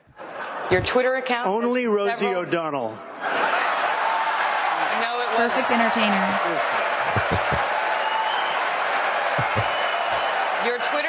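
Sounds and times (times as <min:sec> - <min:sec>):
laughter: 0:00.2 - 0:01.0, 0:07.0 - 0:07.7, 0:09.4 - 0:10.2
speech: 0:00.7 - 0:03.5, 0:05.0 - 0:07.6, 0:10.6 - 0:11.0
audience applause: 0:03.2 - 0:11.0.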